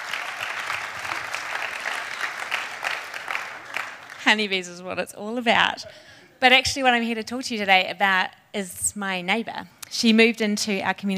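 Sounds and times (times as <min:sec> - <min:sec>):
audience applause welcoming a speaker onto the stage: 0:00.0 - 0:04.4
speech: 0:04.3 - 0:11.1.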